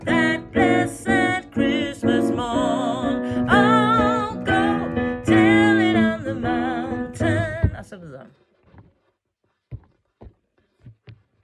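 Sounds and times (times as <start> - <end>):
soprano voices singing: 0.0 - 7.9.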